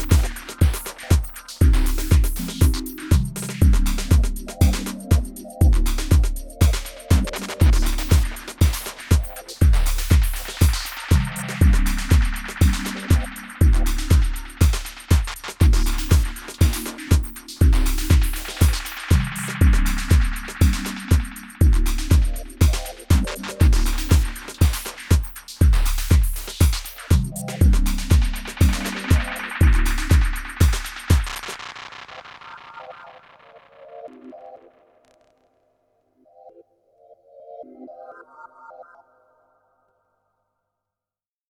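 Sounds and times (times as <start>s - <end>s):
Korg drumlogue drum machine beat: 0.0s - 31.9s.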